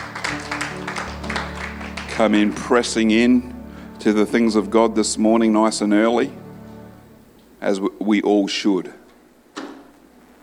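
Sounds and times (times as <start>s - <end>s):
audience clapping: 0.0s - 3.3s
speech: 2.2s - 6.4s, 7.6s - 9.0s.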